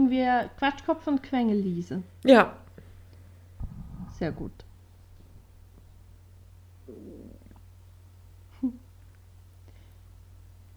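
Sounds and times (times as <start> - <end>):
low steady hum: 0.0 - 10.7
speech: 0.1 - 2.6, 4.2 - 4.7
hungry stomach rumbling: 3.6 - 6.1, 6.8 - 7.7.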